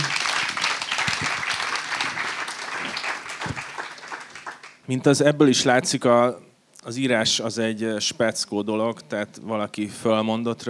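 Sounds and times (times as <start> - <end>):
audience applause for the authors: 0.0 - 4.8
speech: 4.9 - 10.6.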